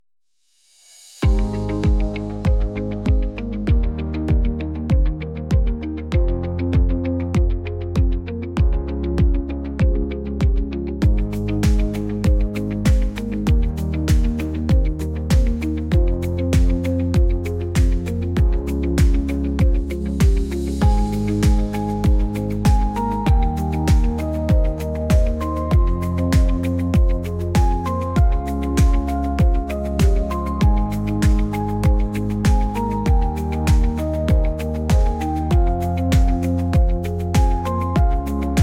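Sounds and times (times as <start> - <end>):
triumphant techno music: 1.2 - 38.6.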